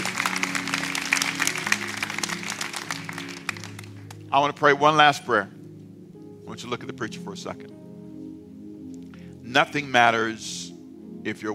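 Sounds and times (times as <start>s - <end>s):
audience applauding: 0.0s - 4.3s
speech: 4.3s - 5.6s, 6.5s - 7.8s, 9.5s - 11.5s.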